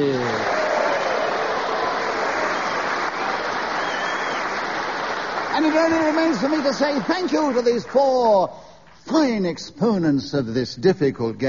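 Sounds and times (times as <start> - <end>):
audience applause: 0.0 - 8.5
speech: 5.6 - 11.4.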